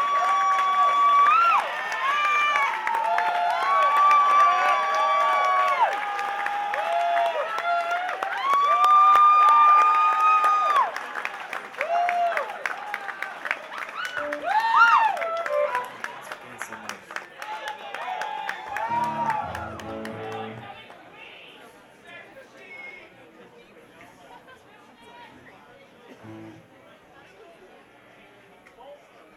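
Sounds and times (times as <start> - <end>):
live audience clapping for encore: 0.0 - 21.1.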